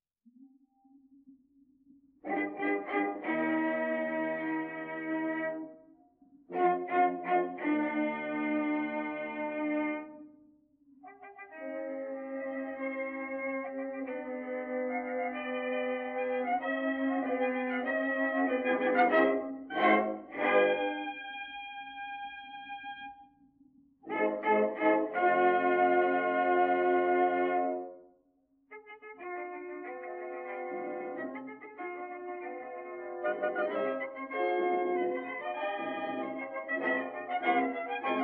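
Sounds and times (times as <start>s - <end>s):
symphony first movement, denoised: 2.2s - 5.6s, 6.5s - 10.1s, 11.4s - 21.6s, 24.0s - 27.9s, 29.2s - 38.2s.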